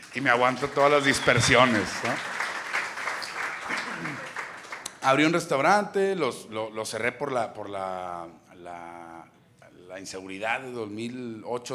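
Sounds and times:
small audience clapping: 0:00.0 - 0:05.4
speech: 0:00.2 - 0:02.4, 0:05.0 - 0:11.7.

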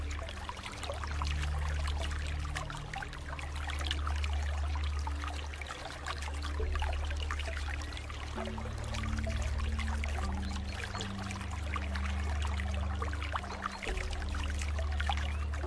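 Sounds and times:
deep relaxing music: 0:00.0 - 0:15.6
water flowing: 0:00.0 - 0:15.6.

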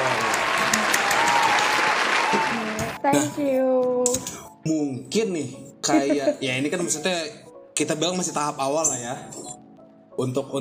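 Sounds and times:
audience applause: 0:00.0 - 0:03.0
speech: 0:03.0 - 0:09.6, 0:10.2 - 0:10.6
laughter: 0:05.9 - 0:06.6.

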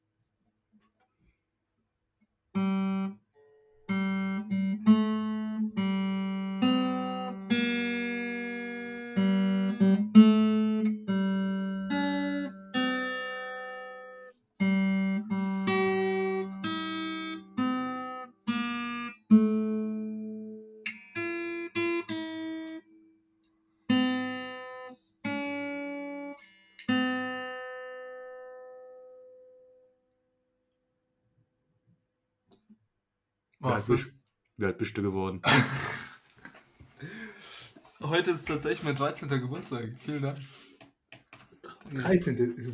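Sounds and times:
acoustic guitar being tuned: 0:02.6 - 0:22.8, 0:23.9 - 0:29.2, 0:37.0 - 0:42.7
speech: 0:33.8 - 0:36.0, 0:38.1 - 0:40.6, 0:41.9 - 0:42.7
laughter: 0:35.4 - 0:37.6.

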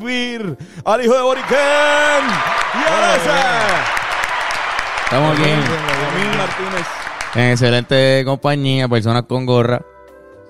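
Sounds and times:
speech: 0:00.0 - 0:04.0, 0:05.1 - 0:09.9
applause: 0:01.0 - 0:08.2
person whooping cheer: 0:01.2 - 0:07.8.

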